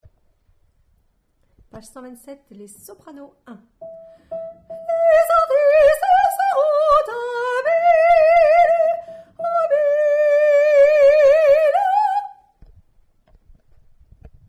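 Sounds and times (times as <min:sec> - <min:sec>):
soprano voice: 0:01.8 - 0:12.5.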